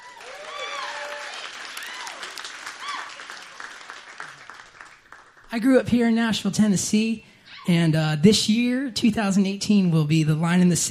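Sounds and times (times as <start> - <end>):
audience applause: 0.0 - 5.5
speech: 5.5 - 10.8.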